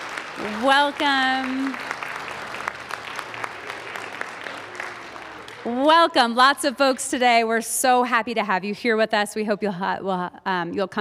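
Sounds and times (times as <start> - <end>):
audience applause: 0.0 - 6.1
speech: 0.4 - 2.0, 5.6 - 10.9.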